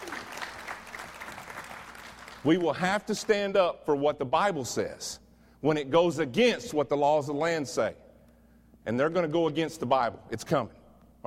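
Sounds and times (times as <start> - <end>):
audience clapping: 0.0 - 3.4
speech: 2.4 - 8.0, 8.8 - 11.2.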